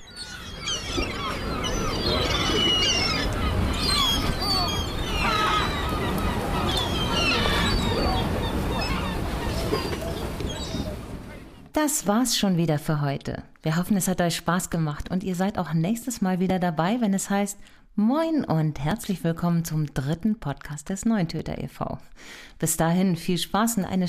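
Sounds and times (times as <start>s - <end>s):
chorus of gulls calling: 0.0s - 11.6s
speech: 11.8s - 24.0s.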